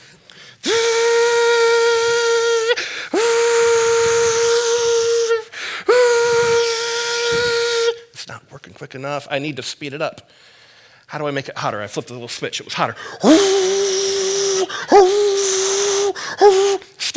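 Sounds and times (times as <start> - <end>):
voice imitating a hair dryer blowing: 0.6 - 8.0, 13.2 - 17.1
speech: 8.9 - 10.5, 11.1 - 13.7, 16.4 - 17.1.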